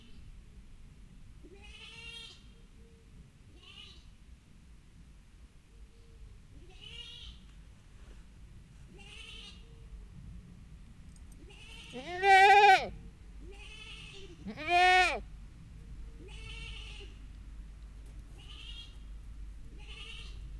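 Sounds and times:
domestic goat kid bleating for its mother in a farmyard: 0:01.5 - 0:02.5, 0:03.5 - 0:04.1, 0:06.7 - 0:07.4, 0:08.9 - 0:09.6, 0:11.4 - 0:15.3, 0:16.2 - 0:17.2, 0:18.4 - 0:19.0, 0:19.7 - 0:20.4.

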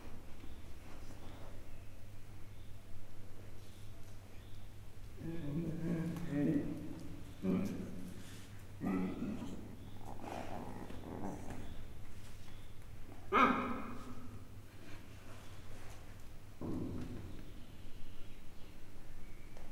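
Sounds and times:
captive male and female leopards growling in a zoo in Miskolc: 0:05.2 - 0:12.0, 0:16.5 - 0:17.7.

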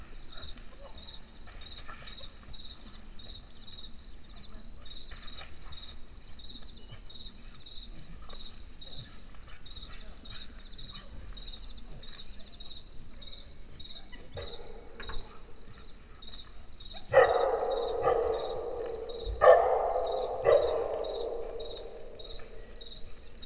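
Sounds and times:
crickets chirping in a forest in the evening: 0:14.4 - 0:16.0, 0:16.8 - 0:23.4.

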